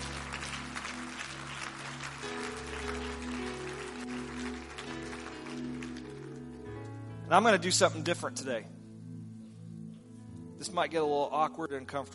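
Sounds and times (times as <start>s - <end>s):
audience clapping hands: 0.0s - 6.8s
speech: 7.3s - 8.8s, 10.7s - 12.1s.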